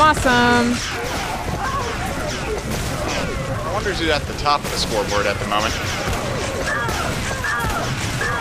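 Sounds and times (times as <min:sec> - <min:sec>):
weapon fire and impacts from the shooter video game Xonotic: 0:00.0 - 0:08.3
speech: 0:00.1 - 0:01.3, 0:03.8 - 0:06.2.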